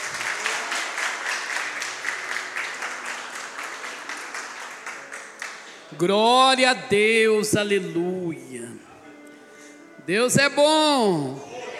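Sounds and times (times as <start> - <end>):
audience applauding: 0.0 - 5.9
speech: 5.9 - 8.9, 10.1 - 11.5.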